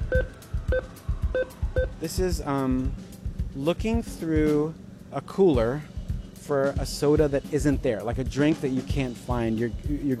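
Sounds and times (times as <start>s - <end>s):
ATM keypad beeps during a cash withdrawal: 0.0s - 1.9s
speech: 1.4s - 10.1s.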